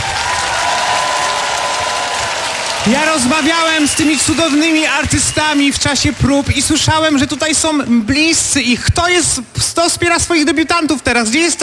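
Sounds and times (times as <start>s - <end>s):
audience applause and cheering: 0.0s - 8.5s
speech: 2.8s - 11.6s.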